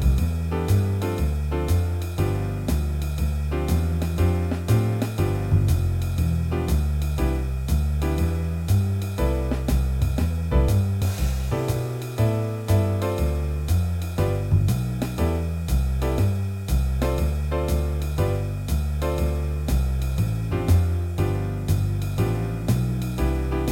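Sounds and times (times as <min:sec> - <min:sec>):
musical warm-ups in C major: 0:00.0 - 0:23.6.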